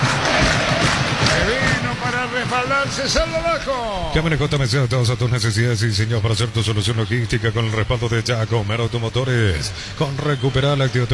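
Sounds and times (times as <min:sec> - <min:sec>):
Olimpia football supporters chanting and singing in the stadium: 0:00.0 - 0:03.5
Olimpia football supporters roaring in the stadium: 0:00.0 - 0:04.1
speech: 0:02.2 - 0:11.1.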